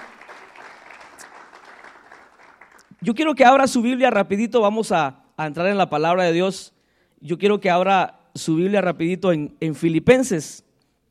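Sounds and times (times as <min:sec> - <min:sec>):
audience applauding: 0:00.0 - 0:03.0
speech: 0:03.0 - 0:10.7.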